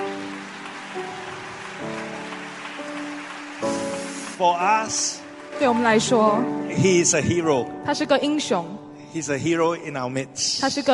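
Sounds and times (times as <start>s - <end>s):
audience applause in church: 0.0s - 7.1s
speech: 4.4s - 10.9s.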